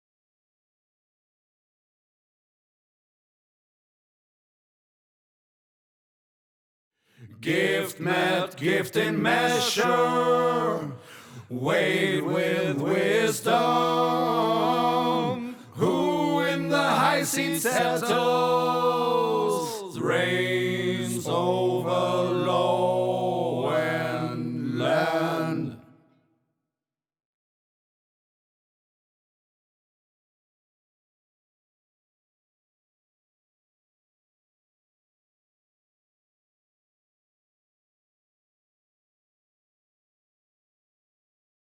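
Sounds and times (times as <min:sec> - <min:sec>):
chorus singing in English: 0:07.3 - 0:26.0.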